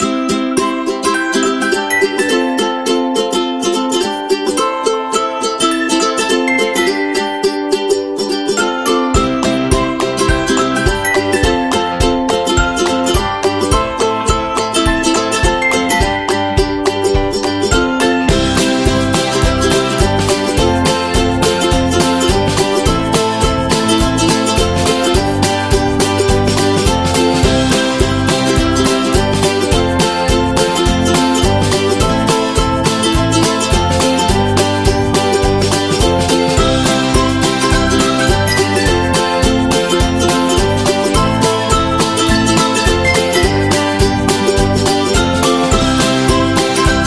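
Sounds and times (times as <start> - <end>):
fun upbeat ukulele music: 0.0 - 47.0.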